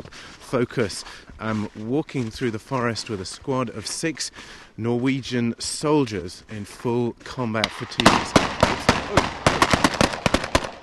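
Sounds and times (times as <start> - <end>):
speech: 0.5 - 9.4
gunfire from a mock enemy attack in a snow-covered forest: 7.6 - 10.8.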